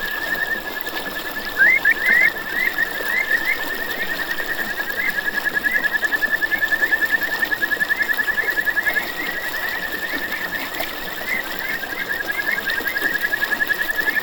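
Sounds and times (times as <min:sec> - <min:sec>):
kajika frog trilling: 0:00.0 - 0:14.2.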